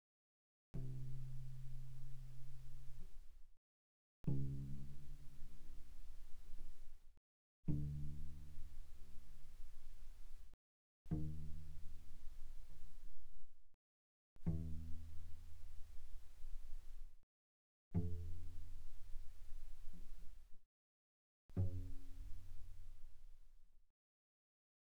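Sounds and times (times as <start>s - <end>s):
soft cello pizzicato on the C string: 0.8s - 3.4s, 4.3s - 7.0s, 7.7s - 10.5s, 11.1s - 13.4s, 14.4s - 17.1s, 18.0s - 20.6s, 21.5s - 23.6s.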